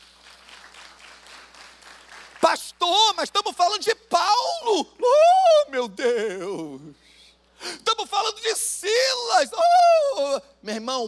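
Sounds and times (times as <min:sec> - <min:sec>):
audience applause: 0:00.0 - 0:02.6
speech: 0:03.2 - 0:07.0, 0:07.7 - 0:11.0.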